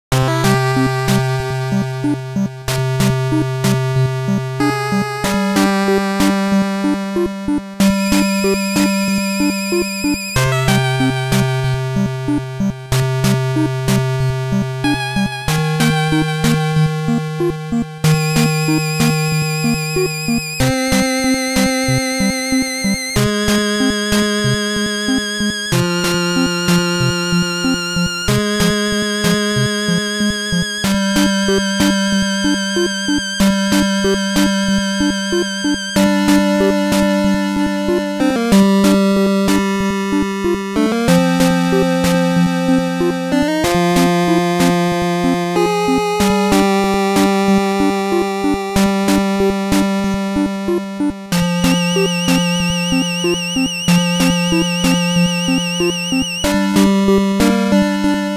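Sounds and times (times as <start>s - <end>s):
tune: 0.4s - 58.3s.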